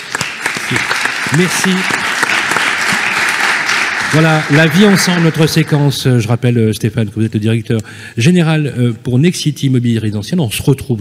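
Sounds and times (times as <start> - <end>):
audience applause: 0.0 - 6.2
speech: 0.7 - 2.0, 4.1 - 10.9.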